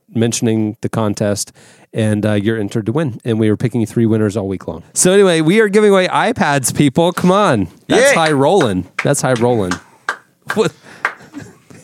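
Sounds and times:
speech: 0:00.2 - 0:09.9, 0:10.5 - 0:11.5
slow hand clapping: 0:08.2 - 0:11.8.

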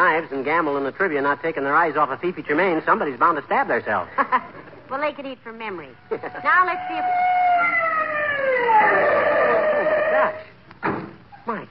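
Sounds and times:
speech: 0:00.0 - 0:09.2, 0:11.5 - 0:11.7
ambulance siren approaching: 0:05.9 - 0:10.4.

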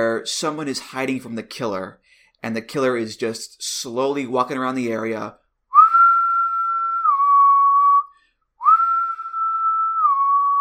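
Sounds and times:
speech: 0:00.0 - 0:05.4
eerie whistling: 0:05.8 - 0:10.5.

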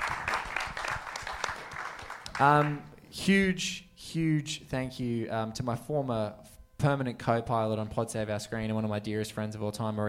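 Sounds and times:
audience applause: 0:00.0 - 0:02.8
speech: 0:02.4 - 0:10.0.

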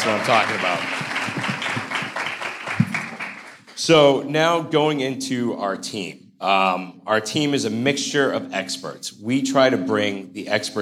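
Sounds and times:
speech: 0:00.0 - 0:01.5, 0:03.8 - 0:10.8
audience round of applause: 0:00.0 - 0:03.8.

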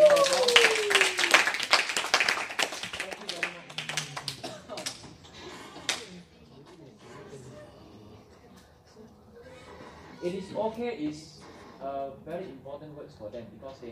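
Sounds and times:
people cheering and calling out: 0:00.0 - 0:02.5
audience applauding the graduates: 0:00.0 - 0:05.0
speech: 0:10.2 - 0:13.8.

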